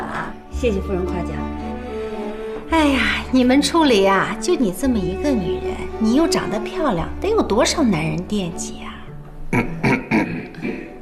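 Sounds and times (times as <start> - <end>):
speech: 0.6 - 1.6, 2.7 - 8.9, 9.5 - 9.8
person coughing: 9.6 - 11.0.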